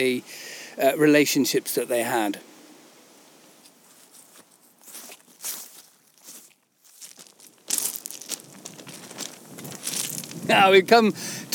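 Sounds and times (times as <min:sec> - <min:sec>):
speech: 0:00.0 - 0:02.5, 0:10.5 - 0:11.4
footsteps crunching over loose gravelly surface outdoors: 0:03.8 - 0:10.8.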